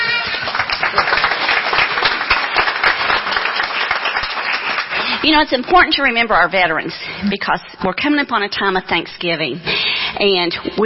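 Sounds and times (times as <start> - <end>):
audience clapping: 0.0 - 6.2
speech: 5.2 - 10.8.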